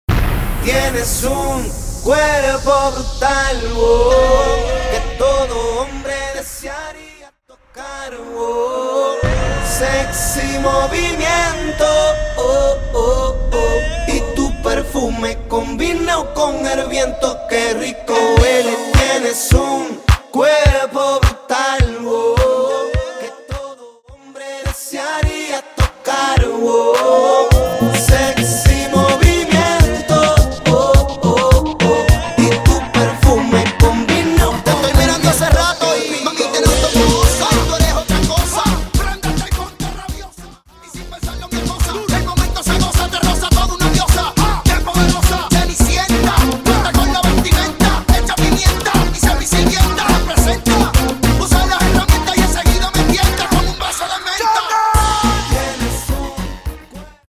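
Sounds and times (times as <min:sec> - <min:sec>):
reggaeton music: 0:00.1 - 0:57.2.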